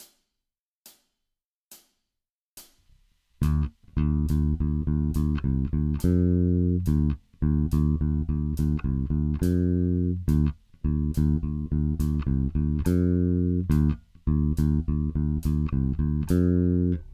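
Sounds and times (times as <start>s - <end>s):
heavy rock blues bass: 3.4s - 17.1s.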